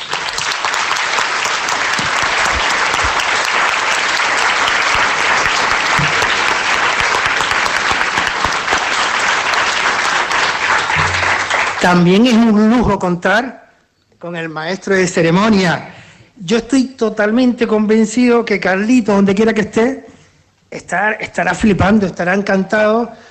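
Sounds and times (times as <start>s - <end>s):
audience applause: 0.0s - 12.1s
speech: 11.8s - 13.6s, 14.2s - 20.1s, 20.7s - 23.2s.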